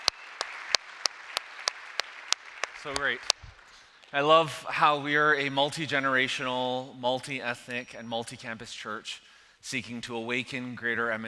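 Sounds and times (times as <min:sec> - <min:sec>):
audience round of applause: 0:00.0 - 0:04.1
speech: 0:02.8 - 0:03.4, 0:04.1 - 0:11.2.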